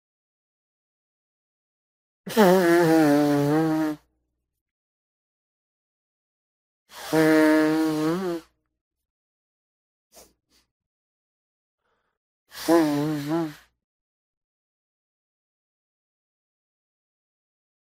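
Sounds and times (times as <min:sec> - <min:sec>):
person blowing nose: 0:02.3 - 0:04.1, 0:06.9 - 0:08.5, 0:12.5 - 0:13.7.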